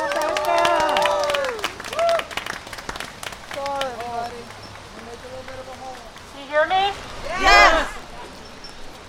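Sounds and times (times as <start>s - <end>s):
voices cheering and whooping: 0.0s - 2.4s, 6.7s - 8.5s
audience applause: 0.0s - 8.4s.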